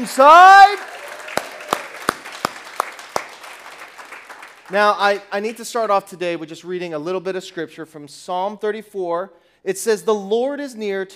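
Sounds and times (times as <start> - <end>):
speech: 0.0 - 0.9, 4.7 - 11.1
audience cheering: 0.0 - 5.0.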